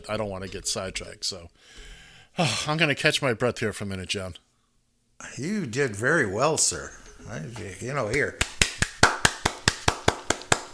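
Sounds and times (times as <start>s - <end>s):
speech: 0.0s - 4.4s, 5.2s - 8.5s
hands clapping: 7.6s - 10.7s.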